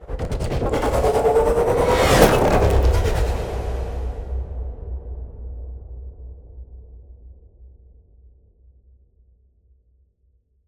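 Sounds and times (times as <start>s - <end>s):
ice spell cold whooshes: 0.0s - 4.6s.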